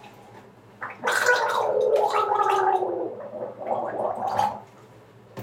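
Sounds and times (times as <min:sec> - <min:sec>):
gargling water while voicing ah: 0:00.8 - 0:04.8.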